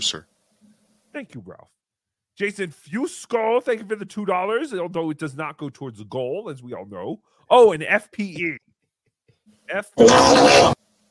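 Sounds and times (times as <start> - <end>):
speech: 0.0 - 0.3, 1.2 - 1.8, 2.4 - 8.6, 9.7 - 10.8
recorded fart played as sound drop: 10.0 - 10.8.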